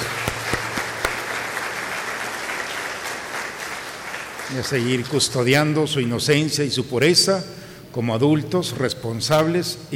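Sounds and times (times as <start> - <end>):
audience applause: 0.0 - 5.2
speech: 4.5 - 9.9.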